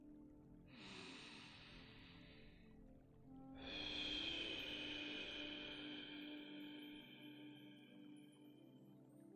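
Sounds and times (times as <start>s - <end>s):
slow deep breath in through the nose and out through the mouth: 0.7s - 8.2s.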